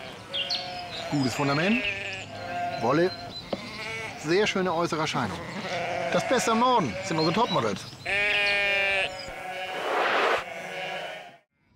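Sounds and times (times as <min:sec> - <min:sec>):
sheep bleating: 0:00.0 - 0:04.4, 0:05.2 - 0:11.4
speech: 0:01.1 - 0:02.0, 0:02.8 - 0:03.2, 0:04.2 - 0:07.9.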